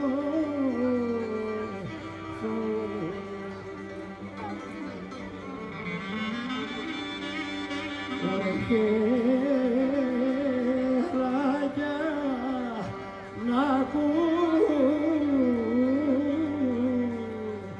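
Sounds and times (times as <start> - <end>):
Sunday park concert music in Athens: 0.0 - 17.7.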